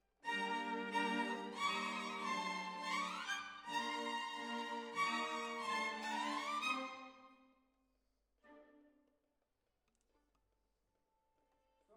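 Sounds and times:
violins: 0:00.2 - 0:07.4.

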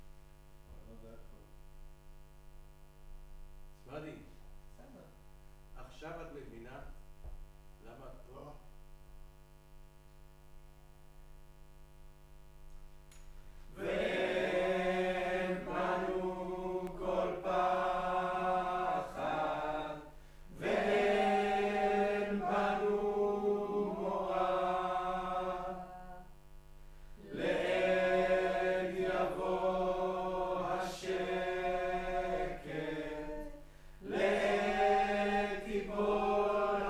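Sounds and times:
choir singing in room: 0:13.8 - 0:26.4, 0:27.2 - 0:36.8.

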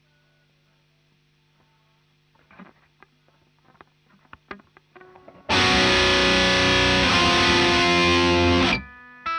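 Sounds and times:
guitar: 0:02.4 - 0:09.3.

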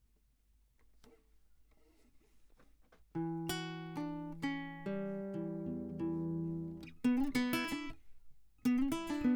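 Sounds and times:
classical guitar: 0:03.1 - 0:09.3.

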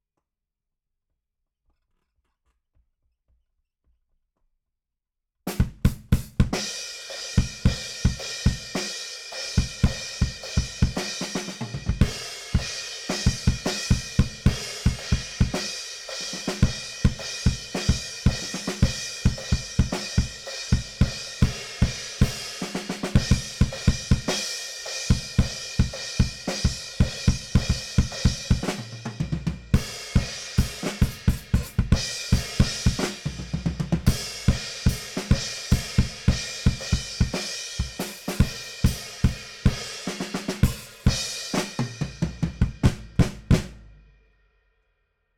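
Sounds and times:
bass drum: 0:05.6 - 0:06.6, 0:09.6 - 0:15.6, 0:16.6 - 0:24.4, 0:25.1 - 0:44.0.

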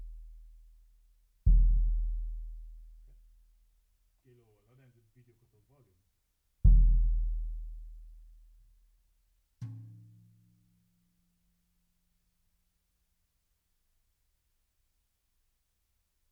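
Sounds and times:
bass drum hit: 0:01.5 - 0:02.9, 0:06.7 - 0:08.2.

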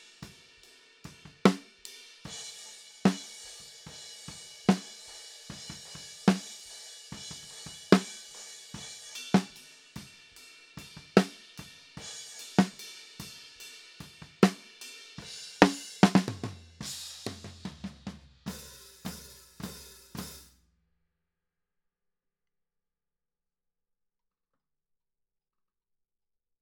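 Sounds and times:
snare drum top: 0:01.1 - 0:10.1, 0:10.8 - 0:13.4, 0:14.0 - 0:20.5.

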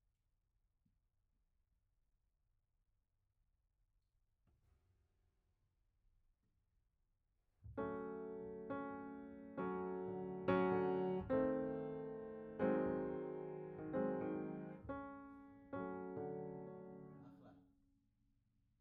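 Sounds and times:
piano note B: 0:07.8 - 0:17.5.

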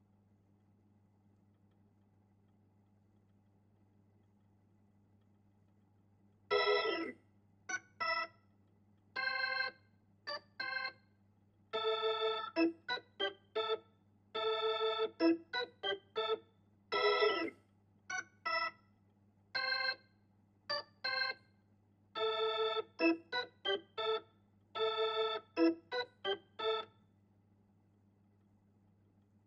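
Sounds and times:
Hammond organ: 0:06.5 - 0:08.4, 0:09.2 - 0:11.0, 0:11.7 - 0:13.8, 0:14.4 - 0:18.8, 0:19.6 - 0:20.0, 0:20.7 - 0:21.5, 0:22.2 - 0:26.9.

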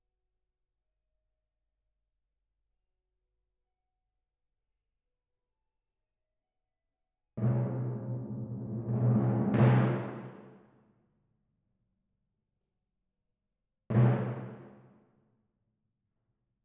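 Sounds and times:
timpani: 0:07.4 - 0:10.8, 0:13.9 - 0:15.0.

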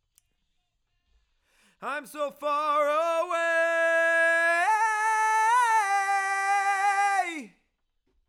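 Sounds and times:
chorus singing: 0:01.8 - 0:07.5.

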